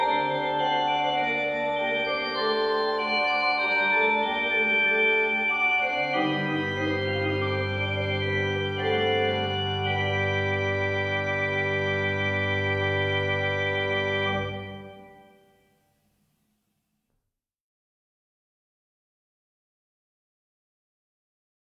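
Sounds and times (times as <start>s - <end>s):
fugue: 0.0s - 15.4s.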